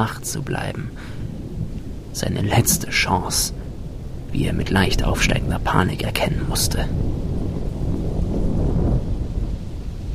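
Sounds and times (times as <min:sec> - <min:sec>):
speech: 0:00.0 - 0:01.2, 0:02.2 - 0:03.6, 0:04.3 - 0:07.2
steady thunder rumble: 0:00.3 - 0:10.1.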